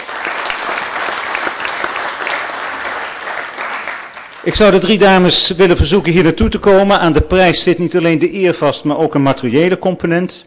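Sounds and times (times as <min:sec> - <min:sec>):
audience applause: 0:00.0 - 0:04.8
speech: 0:04.4 - 0:10.4.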